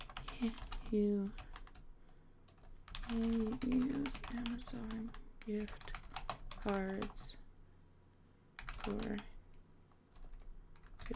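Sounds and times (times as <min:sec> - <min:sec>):
typing on a computer keyboard to search Google: 0:00.0 - 0:01.8, 0:02.5 - 0:07.3, 0:08.6 - 0:09.3, 0:10.1 - 0:11.1
speech: 0:00.4 - 0:01.4, 0:03.1 - 0:06.0, 0:06.6 - 0:07.4, 0:08.8 - 0:09.3.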